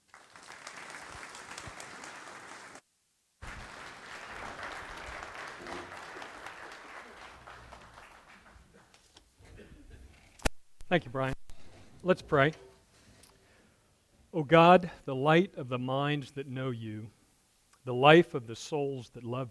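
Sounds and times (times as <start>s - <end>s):
audience applause welcoming a speaker at a faith gathering: 0.0s - 2.8s, 3.4s - 9.0s
speech: 10.9s - 11.3s, 12.0s - 12.7s, 14.4s - 17.2s, 17.8s - 19.4s.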